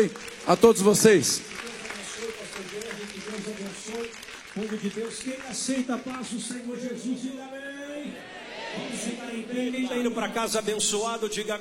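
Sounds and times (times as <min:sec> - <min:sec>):
speech: 0:00.0 - 0:01.7, 0:04.6 - 0:11.5
audience clapping: 0:00.0 - 0:07.0.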